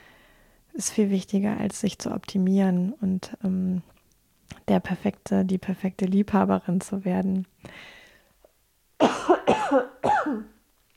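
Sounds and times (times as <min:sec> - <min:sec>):
speech: 0:00.8 - 0:03.9, 0:04.6 - 0:08.0, 0:09.0 - 0:10.5
coughing fit from a person with pollen allergy: 0:09.0 - 0:10.6.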